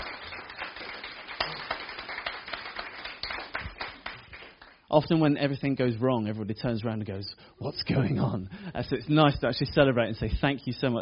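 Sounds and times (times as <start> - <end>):
audience cheering and applause: 0.0 - 4.6
speech: 4.9 - 11.0.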